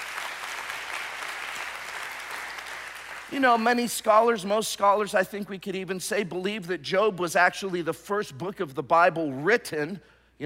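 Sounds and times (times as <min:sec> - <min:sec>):
audience clapping: 0:00.0 - 0:03.5
speech: 0:03.3 - 0:10.4.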